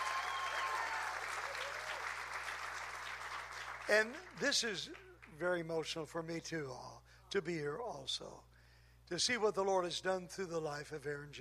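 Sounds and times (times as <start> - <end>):
audience clapping: 0.0 - 5.4
speech: 3.9 - 8.5, 9.1 - 11.4.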